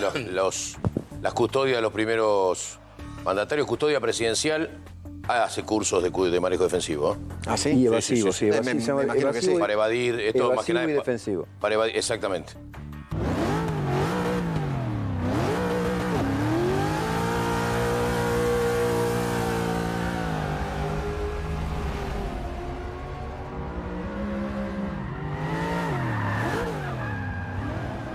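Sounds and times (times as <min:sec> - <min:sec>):
speech: 0:00.0 - 0:12.7
powerful car speeding in reverse, engine revving hard: 0:13.0 - 0:28.1
car tires squealing and skidding: 0:13.1 - 0:28.1.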